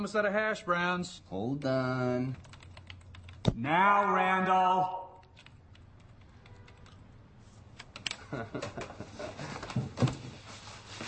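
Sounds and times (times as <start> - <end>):
speech: 0.0 - 2.6, 3.4 - 5.0, 8.3 - 10.1
typing on a computer keyboard: 1.6 - 3.5, 5.1 - 7.0.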